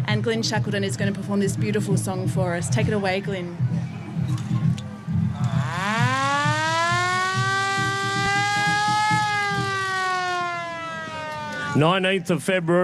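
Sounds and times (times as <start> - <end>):
speech: 0.1 - 4.4, 11.8 - 12.8
war air raid siren wailing: 5.1 - 12.2.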